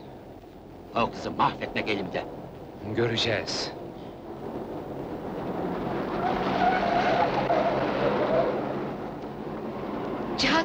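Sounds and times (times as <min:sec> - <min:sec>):
speech: 0:00.9 - 0:03.8
car driving recklessly fast: 0:04.2 - 0:10.6.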